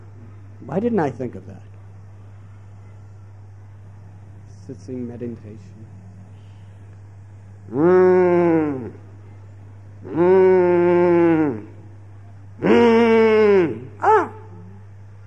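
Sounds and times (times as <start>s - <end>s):
speech: 0.6s - 1.7s, 4.7s - 6.0s, 7.7s - 9.0s, 10.0s - 10.5s
steady low hum: 1.5s - 15.2s
cow mooing: 7.7s - 9.0s, 10.0s - 11.8s.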